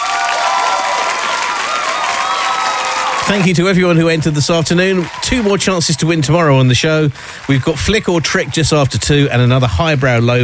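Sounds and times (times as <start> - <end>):
crowd cheering and whooping: 0.0 - 3.7, 4.7 - 6.3
crowd applause: 0.0 - 10.4
speech: 3.3 - 10.4.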